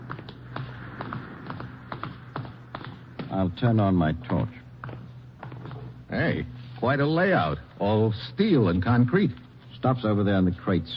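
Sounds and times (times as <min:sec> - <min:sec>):
footsteps climbing steps: 0:00.0 - 0:06.1
low hum: 0:00.0 - 0:10.9
speech: 0:03.4 - 0:04.6, 0:06.1 - 0:10.9.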